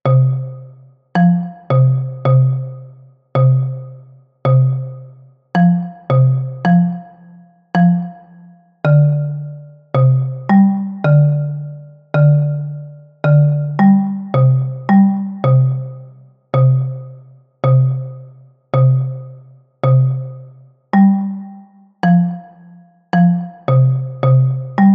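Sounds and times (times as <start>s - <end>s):
rumba on bass xylophone: 0.1s - 24.9s.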